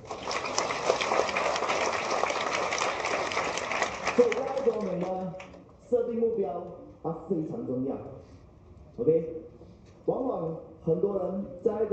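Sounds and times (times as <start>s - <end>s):
audience applause: 0.0s - 5.3s
speech: 6.6s - 8.3s, 9.0s - 9.4s, 10.2s - 11.9s.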